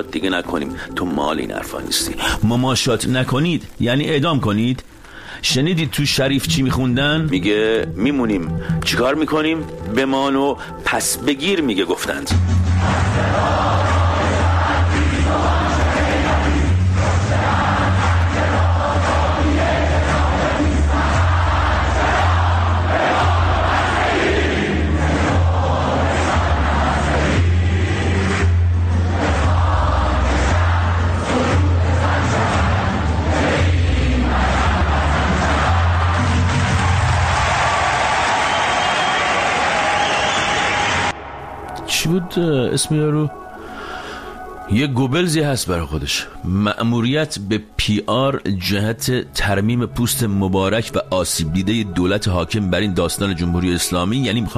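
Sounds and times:
speech: 0.0s - 13.8s, 42.1s - 43.4s, 44.7s - 54.5s
large crowd chanting protest slogans in unison: 12.6s - 41.6s.

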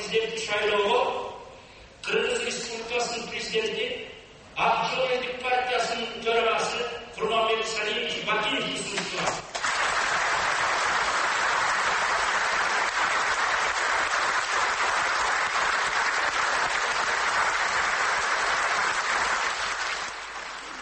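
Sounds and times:
speech: 0.1s - 1.3s, 2.0s - 9.5s
applause from delegates at a Kyrgyz party congress: 9.6s - 20.8s.

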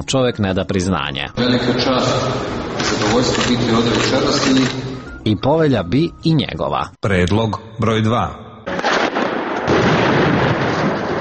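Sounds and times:
speech: 0.0s - 8.4s
explosions: 8.7s - 11.1s
gunfire: 8.7s - 11.1s.

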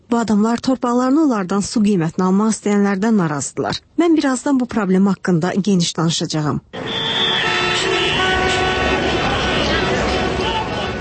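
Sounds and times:
speech: 0.1s - 7.0s
car horns honking in a traffic jam on the road from Tbilisi Avenue into Baku: 6.8s - 11.0s
vehicle engines in a traffic jam in Baku: 6.8s - 11.0s.

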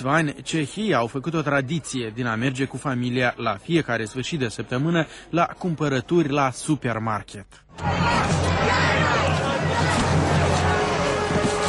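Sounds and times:
speech: 0.0s - 9.4s
crowd of several hundred people shouting in Prague: 7.7s - 11.6s.

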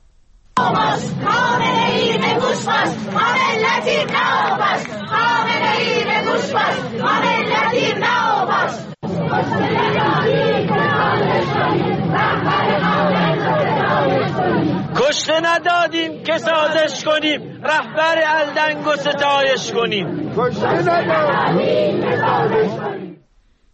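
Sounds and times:
funeral mourners in Sanandaj, Kurdistan chanting protest slogans against Iran's Islamic Republic: 0.6s - 23.2s
speech: 15.1s - 23.0s.

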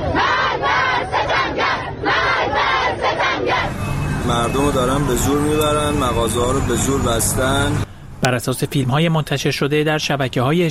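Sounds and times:
protesters chanting slogans in the street: 0.0s - 7.8s
speech: 4.3s - 10.7s.

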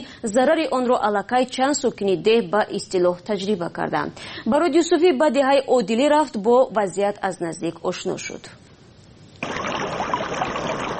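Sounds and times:
speech: 0.0s - 8.6s
small stream flowing near the village of Adeli in Vahdat district: 9.4s - 10.9s.

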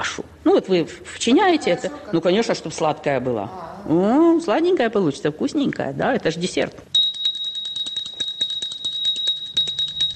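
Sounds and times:
speech: 0.5s - 6.9s
ceramic table bell ringing: 6.9s - 10.1s.

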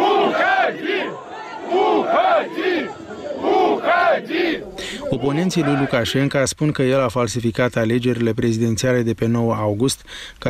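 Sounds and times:
workers shouting at a protest: 0.0s - 6.2s
speech: 4.5s - 10.4s.

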